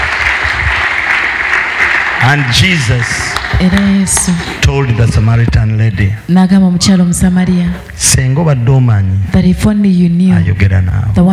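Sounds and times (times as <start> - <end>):
audience clapping hands: 0.0 - 5.4
speech: 2.3 - 11.3.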